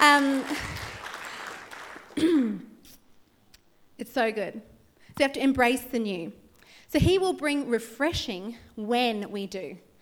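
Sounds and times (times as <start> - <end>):
audience applause: 0.0 - 2.2
speech: 4.2 - 9.9.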